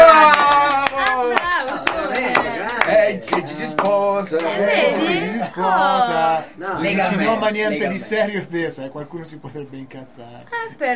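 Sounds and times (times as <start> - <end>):
hands clapping: 0.0 - 5.2
speech: 5.5 - 10.9.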